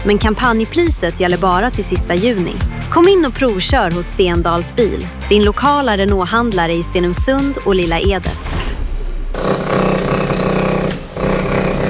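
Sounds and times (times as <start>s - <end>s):
speech: 0.0s - 8.6s
hydraulic rammer hammering: 9.4s - 11.8s.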